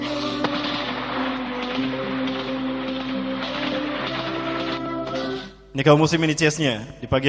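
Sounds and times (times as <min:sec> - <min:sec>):
gunfire, bullets being shot: 0:00.2 - 0:05.3
speech: 0:05.8 - 0:07.2.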